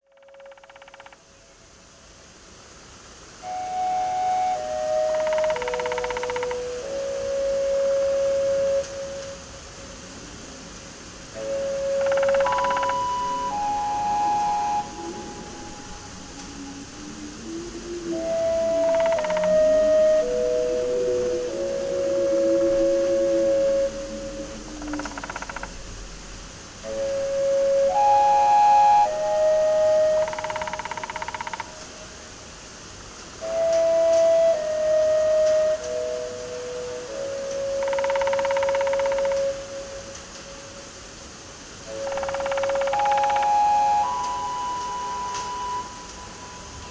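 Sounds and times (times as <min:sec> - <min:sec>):
rain: 0:00.0 - 0:46.8.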